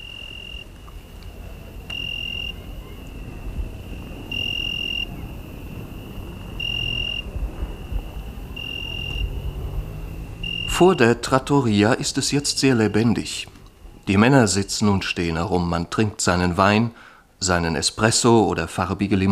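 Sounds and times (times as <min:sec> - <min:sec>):
cicadas shrilling at night: 0:00.0 - 0:15.5
low rumbling background: 0:00.0 - 0:15.7
speech: 0:10.8 - 0:13.5, 0:14.1 - 0:19.3.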